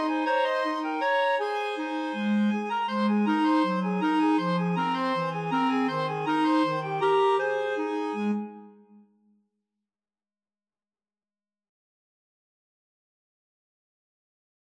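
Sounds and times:
clarinet trio: 0.0 - 9.0.

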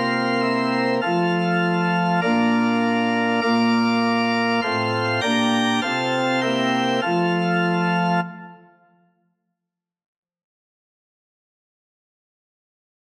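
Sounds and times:
organ playing Bohemian Christmas music: 0.0 - 9.0.

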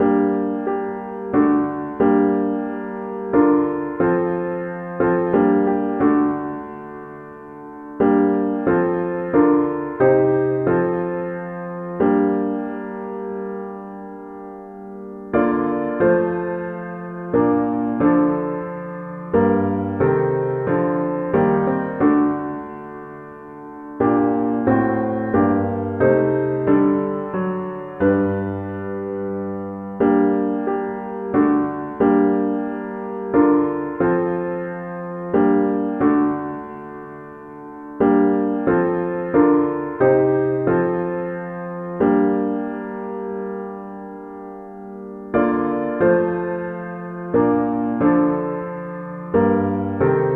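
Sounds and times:
piano: 0.0 - 50.3.

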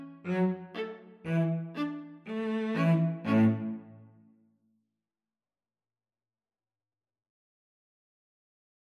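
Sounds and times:
string trio playing: 0.0 - 4.2.

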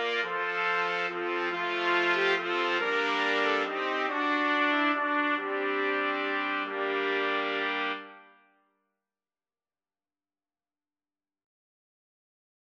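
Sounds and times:
trumpets playing: 0.0 - 8.5.

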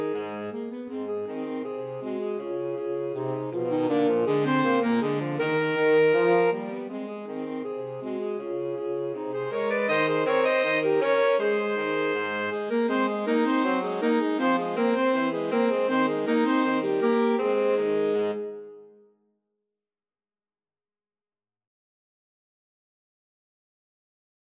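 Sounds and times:
two alto saxophones and tenor saxophone playing: 0.0 - 18.8.

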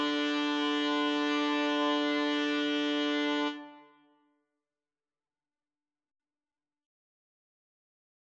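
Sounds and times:
two trumpets: 0.0 - 4.0.

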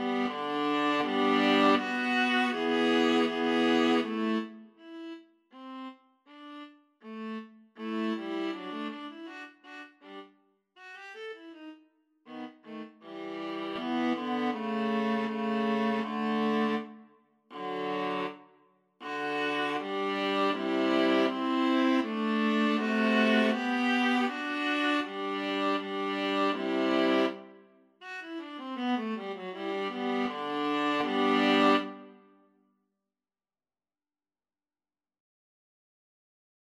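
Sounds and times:
viola trio playing a gavotte: 0.0 - 4.4, 12.8 - 16.8, 17.6 - 18.3, 19.0 - 27.4, 28.8 - 32.1.

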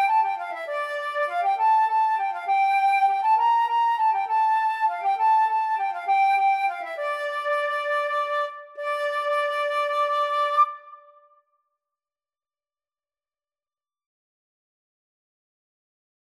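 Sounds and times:
flute duet: 0.0 - 11.3.

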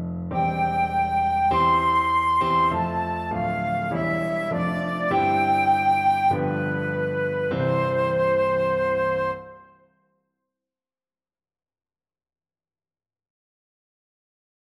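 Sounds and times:
flute playing a national anthem: 0.4 - 9.8.

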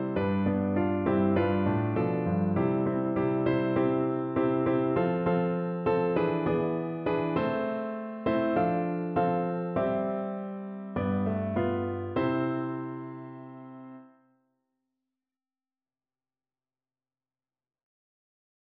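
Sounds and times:
piano: 0.0 - 14.3.

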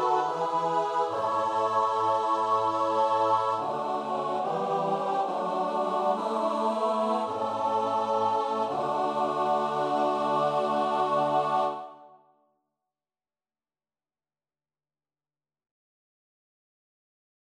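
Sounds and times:
choir singing: 0.0 - 12.2.

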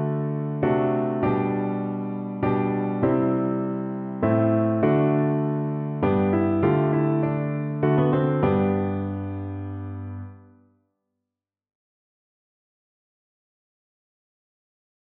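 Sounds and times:
piano: 0.0 - 10.7.

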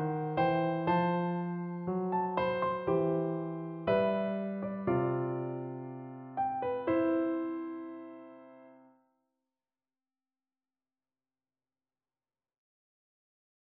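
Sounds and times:
romance piano piece: 0.0 - 9.0.

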